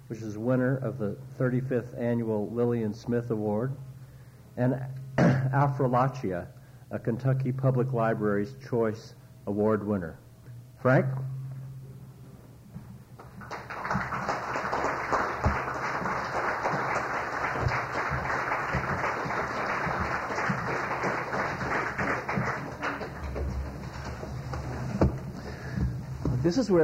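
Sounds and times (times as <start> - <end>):
speech: 0.1 - 3.9, 4.6 - 10.2, 10.8 - 11.3, 26.6 - 26.8
audience clapping: 13.2 - 25.9.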